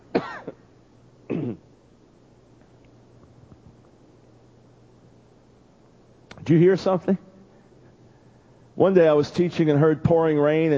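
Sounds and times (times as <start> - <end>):
coughing: 0.0 - 1.8
throat clearing: 0.1 - 0.7, 1.3 - 1.7
speech: 6.5 - 7.3, 8.8 - 10.7.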